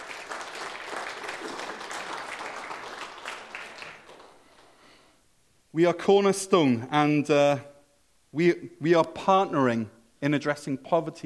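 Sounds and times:
audience applause: 0.0 - 4.8
speech: 5.8 - 7.7, 8.4 - 11.2.

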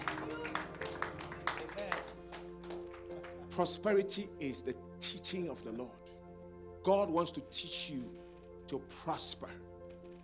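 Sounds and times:
audience clapping: 0.0 - 3.6
speech: 3.6 - 6.0, 6.8 - 9.8.

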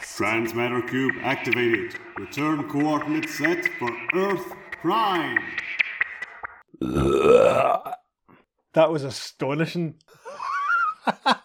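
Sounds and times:
speech: 0.2 - 5.6, 6.8 - 8.0, 8.7 - 10.2, 11.2 - 11.4
loud deliberate burp: 6.7 - 8.2
laughter: 10.2 - 11.4.

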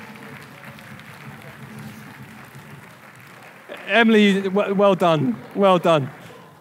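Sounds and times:
audience clapping for children: 0.0 - 6.6
speech: 3.9 - 6.2.

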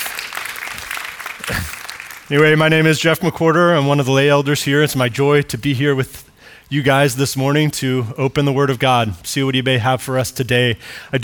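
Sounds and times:
audience applause: 0.0 - 2.3
speech: 1.5 - 11.2.

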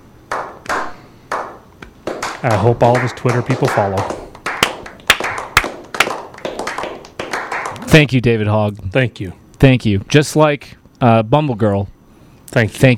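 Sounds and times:
people clapping: 0.3 - 8.1
speech: 2.4 - 4.2, 7.9 - 12.9.

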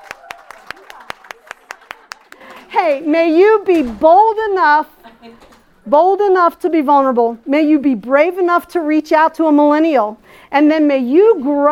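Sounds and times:
audience applause: 0.0 - 2.7
speech: 2.7 - 11.7.

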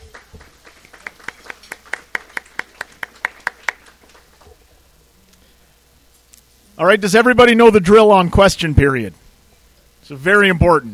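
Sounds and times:
hand claps: 0.0 - 4.4
speech: 6.8 - 9.2, 10.1 - 10.9.

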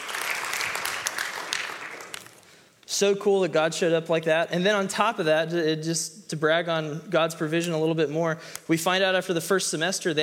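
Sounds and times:
crowd applauding: 0.0 - 2.5
speech: 3.0 - 10.2.

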